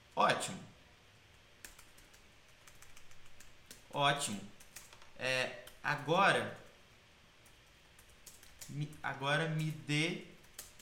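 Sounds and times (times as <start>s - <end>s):
speech: 0.2s - 0.7s, 3.9s - 4.6s, 5.2s - 6.6s, 8.7s - 10.3s
typing on a computer keyboard: 1.6s - 5.8s, 7.4s - 10.8s.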